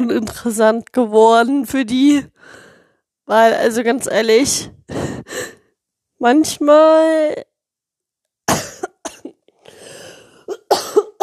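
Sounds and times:
speech: 0.0 - 2.6, 3.3 - 5.6, 6.2 - 7.5
wheezy breathing: 2.2 - 3.0, 4.8 - 5.7, 9.6 - 10.5
person with a cold coughing: 8.5 - 9.4, 10.4 - 11.2.

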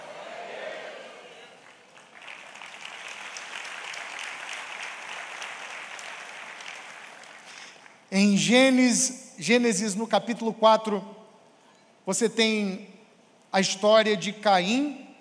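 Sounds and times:
audience applauding: 1.3 - 8.1
speech: 8.1 - 11.2, 12.0 - 12.9, 13.5 - 15.0.

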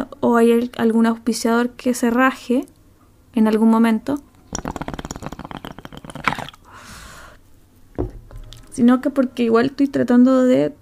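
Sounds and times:
speech: 0.2 - 2.7, 3.4 - 4.8, 8.8 - 10.7
water pipe bubbling while smoking: 4.5 - 6.8
breathy hiss: 6.2 - 7.5
dull knock: 8.0 - 8.4.

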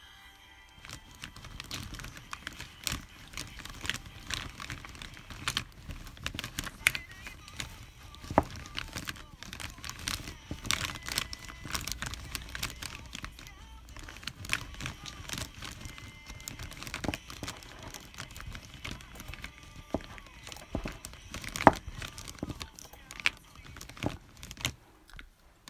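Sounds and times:
crunching and chewing: 0.8 - 25.6.

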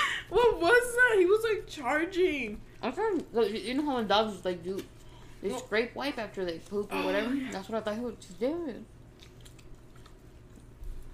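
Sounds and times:
speech: 0.4 - 8.9
chewing hard-to-chew food: 9.0 - 11.1.

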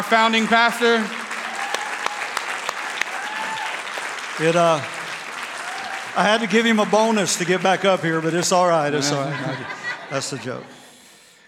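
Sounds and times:
speech: 0.0 - 1.2, 4.4 - 5.0, 6.1 - 10.8
round of applause: 0.0 - 10.4
laughter: 6.2 - 11.0.

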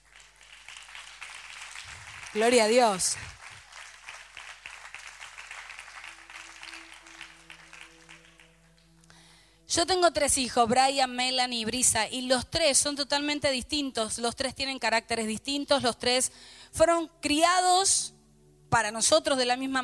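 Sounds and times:
crowd applauding: 0.0 - 9.1
speech: 2.3 - 3.4, 9.8 - 19.8.

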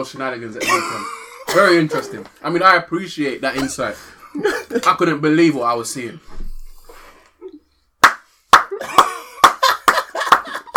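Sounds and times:
speech: 0.0 - 6.5
laughter: 0.6 - 2.3, 8.7 - 10.7
slapping cheeks like clapping: 8.0 - 10.7.

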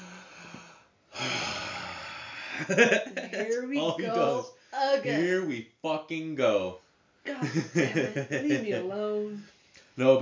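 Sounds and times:
person imitating a pet's big, deep sigh: 0.0 - 2.5
laughter: 2.6 - 4.4, 7.4 - 8.9
speech: 2.6 - 10.1.

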